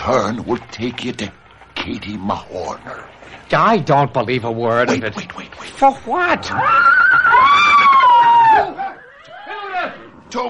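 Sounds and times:
speech: 0:00.0 - 0:07.6
laughter: 0:04.8 - 0:09.7
horses neighing in panic: 0:06.4 - 0:10.2.

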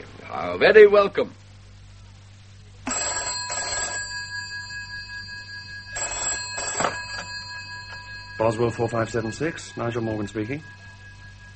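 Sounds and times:
speech: 0:00.3 - 0:01.4, 0:08.4 - 0:10.8
telephone bell ringing: 0:02.8 - 0:11.5.

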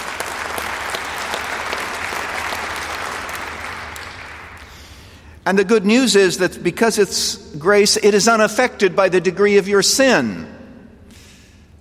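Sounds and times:
audience applause: 0:00.0 - 0:05.1
speech: 0:05.5 - 0:10.6.

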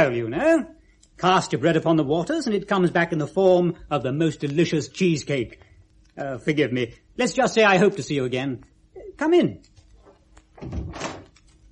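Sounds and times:
speech: 0:00.0 - 0:09.7, 0:10.6 - 0:11.2
door closing: 0:10.1 - 0:11.4.

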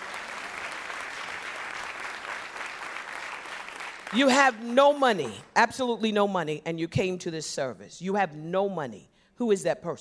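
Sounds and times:
audience hand clapping: 0:00.0 - 0:04.6
speech: 0:04.1 - 0:09.9.

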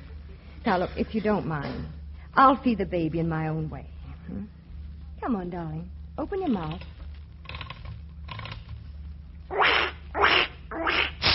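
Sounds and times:
faint low hum: 0:00.0 - 0:11.3
speech: 0:00.6 - 0:04.6, 0:05.2 - 0:06.9
broken toy duck quacking: 0:09.5 - 0:11.1.

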